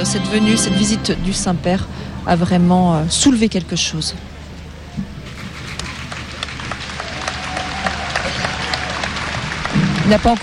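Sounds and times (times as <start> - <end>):
speech: 0.0 - 4.3, 10.1 - 10.4
crowd applauding the pope: 5.3 - 10.4.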